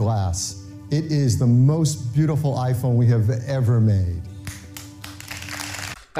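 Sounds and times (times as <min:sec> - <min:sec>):
speech: 0:00.3 - 0:04.3
audience applause: 0:05.0 - 0:06.1.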